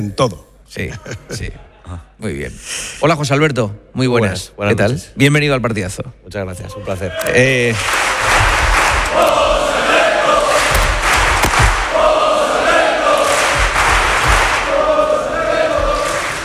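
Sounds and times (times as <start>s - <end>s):
speech: 0.0s - 8.5s
crowd singing a chant for a studio guest: 8.2s - 16.4s.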